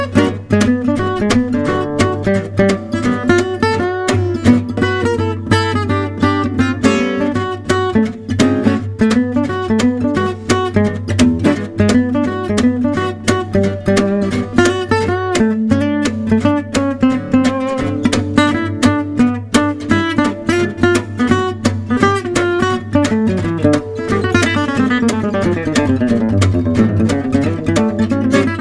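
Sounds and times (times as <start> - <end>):
gypsy jazz music: 0.0 - 28.5.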